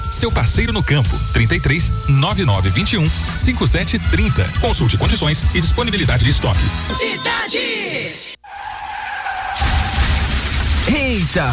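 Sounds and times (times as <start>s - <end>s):
speech: 0.2s - 8.3s, 10.9s - 11.5s
car tyre squeal in an insurance advert: 8.4s - 10.7s
car crash crunching in an insurance advert: 8.4s - 11.5s.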